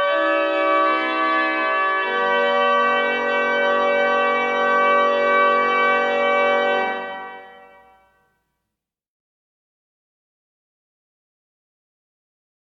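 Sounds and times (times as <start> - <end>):
chorale prelude: 0.0 - 8.2.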